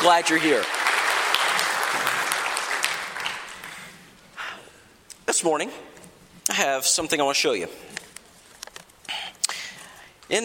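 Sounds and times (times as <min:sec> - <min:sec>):
speech: 0:00.0 - 0:00.8, 0:05.3 - 0:08.0, 0:10.3 - 0:10.4
round of applause: 0:00.0 - 0:04.0.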